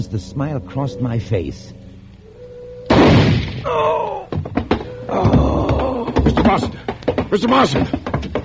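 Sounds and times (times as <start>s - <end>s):
speech: 0.0s - 1.8s, 3.6s - 4.2s, 5.1s - 5.4s, 6.5s - 8.0s
shotgun bang: 2.9s - 3.7s
knocks and thumps: 4.2s - 8.4s.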